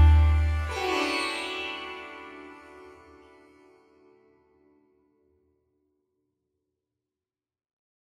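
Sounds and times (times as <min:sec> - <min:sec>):
traditional sitar at 98 Hz: 0:00.0 - 0:04.7.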